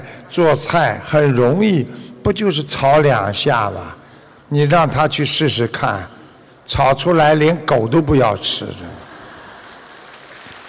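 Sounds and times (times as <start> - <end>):
speech: 0.3 - 9.0
audience applause: 9.2 - 10.6.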